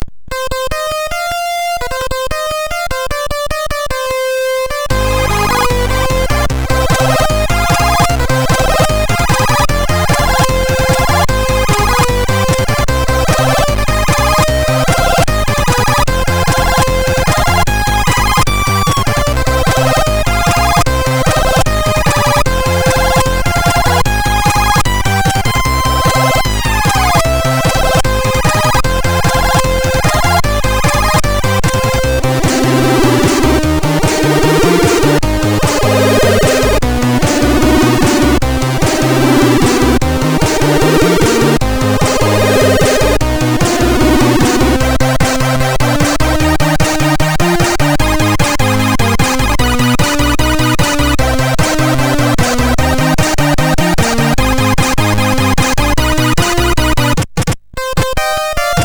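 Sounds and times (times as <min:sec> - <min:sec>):
chiptune music on MOS6581R3: 0:00.0 - 0:58.8.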